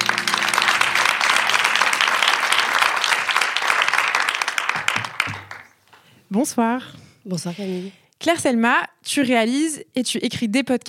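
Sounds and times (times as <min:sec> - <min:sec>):
audience applause: 0:00.0 - 0:05.8
speech: 0:06.4 - 0:10.8.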